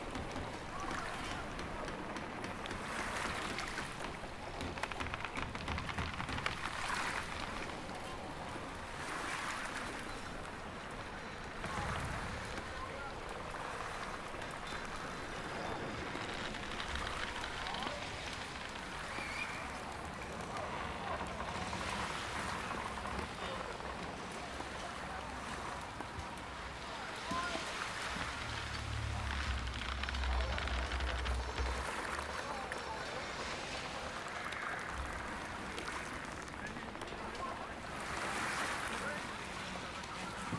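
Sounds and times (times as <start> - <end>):
fishing village ambience: 0.0 - 40.5.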